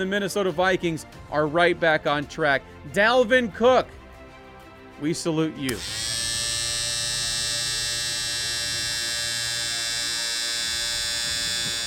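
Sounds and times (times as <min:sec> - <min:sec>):
speech: 0:00.0 - 0:04.0, 0:05.0 - 0:06.3
long electric buzzer: 0:05.7 - 0:11.8.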